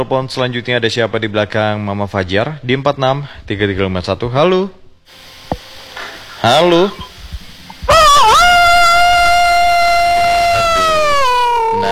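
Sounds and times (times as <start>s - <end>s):
speech: 0.0s - 5.2s, 6.4s - 7.1s
rooster crowing: 7.9s - 11.9s.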